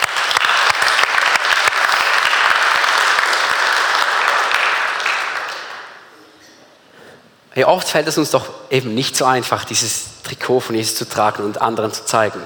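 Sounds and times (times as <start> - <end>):
audience applause: 0.0 - 6.0
speech: 7.6 - 12.4.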